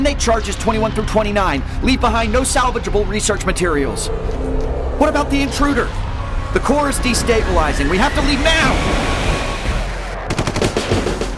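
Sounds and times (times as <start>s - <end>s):
speech: 0.0s - 9.1s
low rumbling noise: 2.1s - 9.6s
rapid gunfire: 10.2s - 11.3s.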